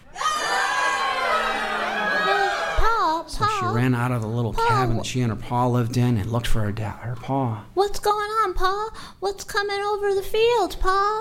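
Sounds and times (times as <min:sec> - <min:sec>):
crowd of people screaming: 0:00.0 - 0:03.1
speech: 0:03.4 - 0:11.1.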